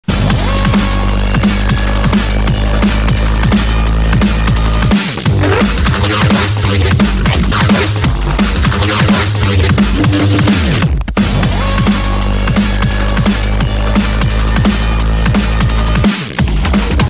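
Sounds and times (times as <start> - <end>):
drum and bass music: 0.0 - 17.0.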